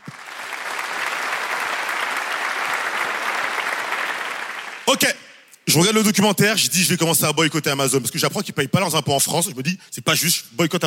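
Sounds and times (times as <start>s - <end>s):
audience applause: 0.0s - 5.0s
speech: 4.9s - 10.8s.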